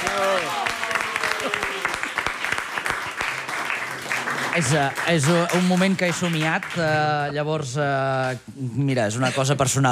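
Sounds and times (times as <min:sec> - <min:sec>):
audience applause: 0:00.0 - 0:07.4
speech: 0:04.6 - 0:09.9.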